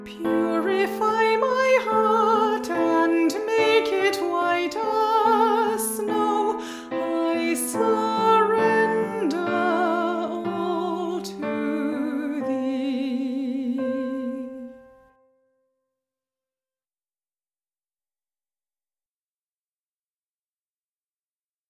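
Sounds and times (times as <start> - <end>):
song with vocals: 0.0 - 15.2.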